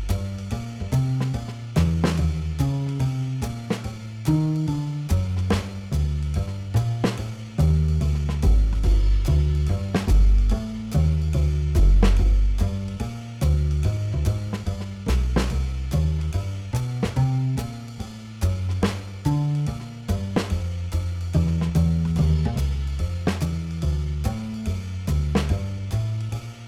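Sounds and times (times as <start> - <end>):
jazz improvisation backing track without piano: 0.0 - 26.6.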